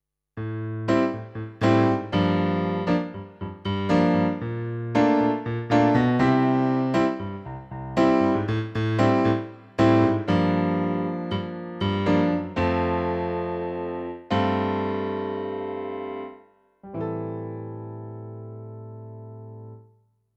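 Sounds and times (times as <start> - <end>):
MX49 piano: 0.4 - 20.0.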